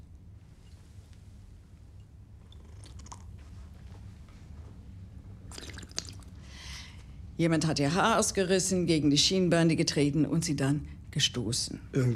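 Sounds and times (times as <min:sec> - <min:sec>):
person drinking in gulps: 0:02.5 - 0:03.4, 0:05.5 - 0:06.4
speech: 0:07.4 - 0:12.1.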